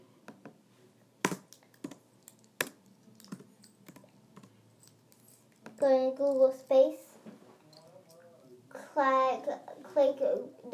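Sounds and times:
typing on a computer keyboard: 1.6s - 5.0s
speech: 5.8s - 7.1s, 9.0s - 10.7s.

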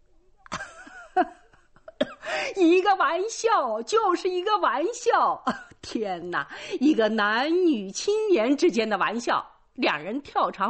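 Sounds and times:
person coughing with laughter: 1.9s - 2.4s
strained voiced wheeze: 2.2s - 2.6s
speech: 2.6s - 10.6s.

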